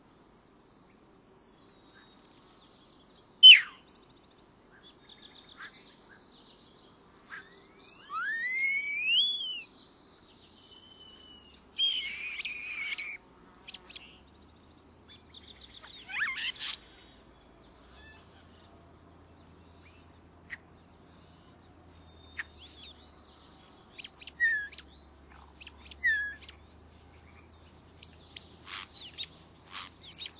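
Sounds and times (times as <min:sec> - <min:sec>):
European starling calling: 0:03.4 - 0:03.8, 0:07.3 - 0:09.7, 0:10.8 - 0:14.2, 0:15.1 - 0:18.6, 0:23.7 - 0:26.6, 0:27.4 - 0:30.3.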